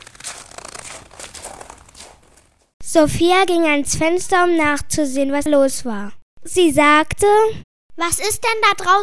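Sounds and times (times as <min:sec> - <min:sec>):
footsteps crunching in packed snow: 0:00.0 - 0:02.8
speech: 0:02.9 - 0:09.0.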